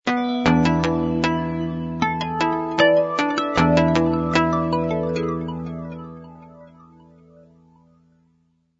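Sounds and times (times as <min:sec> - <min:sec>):
theme music: 0:00.4 - 0:06.6.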